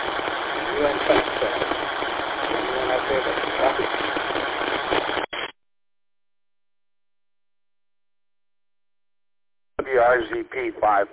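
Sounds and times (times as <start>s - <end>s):
heavy static on ham radio transmission: 0.0s - 5.6s, 9.8s - 11.1s.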